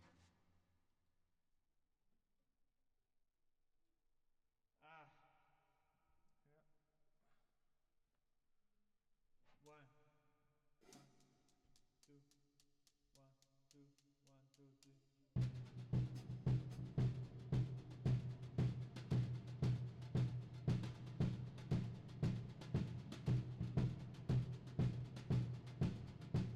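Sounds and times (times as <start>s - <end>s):
drums with reverb: 15.4s - 26.5s.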